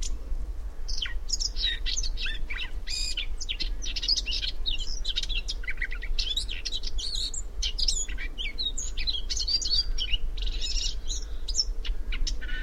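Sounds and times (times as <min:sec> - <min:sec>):
Eurasian blackcap Sylvia atricapilla singing: 0:00.9 - 0:12.6.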